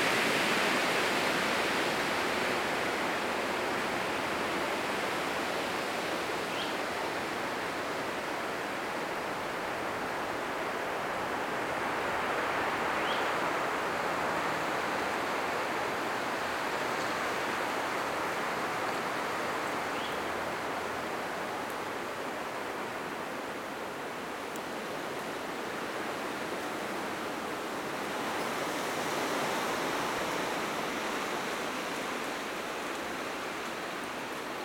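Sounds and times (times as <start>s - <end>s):
wind through pine trees in a forest in Manteo NC: 0.0s - 34.6s.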